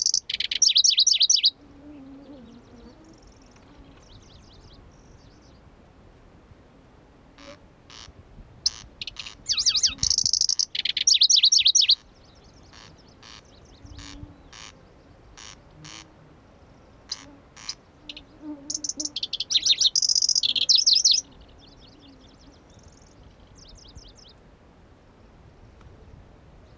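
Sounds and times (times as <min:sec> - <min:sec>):
Pallas's grasshopper warbler singing: 0:00.0 - 0:01.6, 0:02.2 - 0:05.7, 0:08.7 - 0:16.0, 0:16.8 - 0:24.4.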